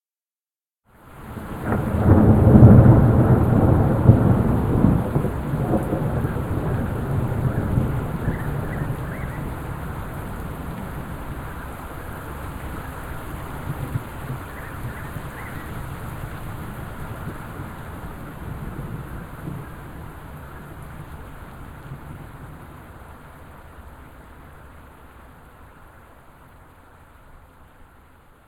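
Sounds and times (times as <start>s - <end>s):
thunder: 1.3s - 11.2s, 13.6s - 22.7s.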